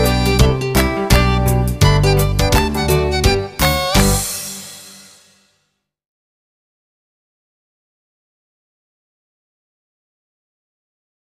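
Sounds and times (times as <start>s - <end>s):
children's learning song: 0.0s - 5.5s.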